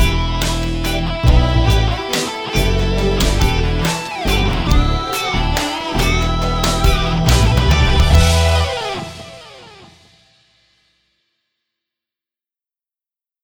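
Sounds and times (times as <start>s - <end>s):
trailer music: 0.0s - 10.2s.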